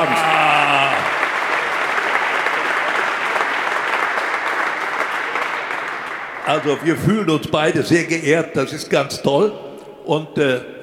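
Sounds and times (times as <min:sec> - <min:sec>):
audience applause: 0:00.0 - 0:07.4
speech: 0:06.5 - 0:10.7.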